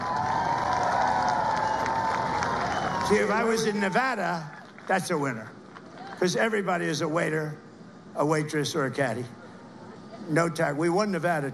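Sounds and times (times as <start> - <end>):
large crowd at a political rally cheering and clapping: 0.0 - 6.3
speech: 3.1 - 5.6, 6.2 - 7.6, 8.2 - 9.4, 10.2 - 11.5.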